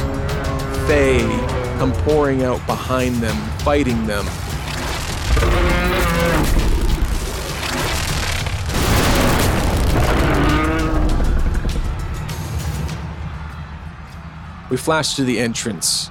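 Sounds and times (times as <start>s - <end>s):
speech: 0.9s - 4.4s, 14.7s - 16.0s
constant loud rumbling wash of noise: 4.6s - 13.3s
creature's bellowing roar: 5.3s - 7.2s.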